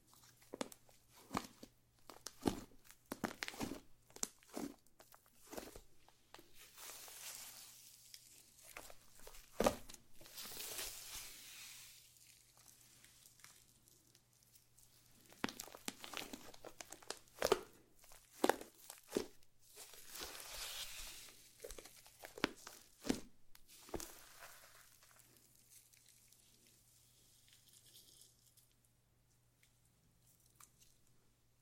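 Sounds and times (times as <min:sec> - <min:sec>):
slime being squished and stretched: 0:00.2 - 0:11.6, 0:14.8 - 0:26.3.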